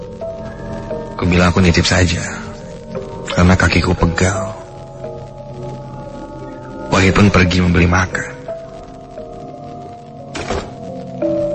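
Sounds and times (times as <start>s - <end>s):
speech: 1.2s - 2.4s, 3.3s - 4.6s, 7.0s - 8.3s
door closing: 10.3s - 10.8s.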